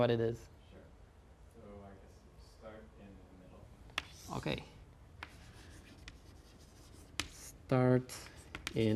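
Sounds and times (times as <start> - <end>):
speech: 0.0 - 0.6, 4.3 - 4.7, 7.7 - 8.9
steady low hiss: 0.0 - 8.9
pseudocode being written on a board: 3.9 - 4.4, 5.2 - 8.9.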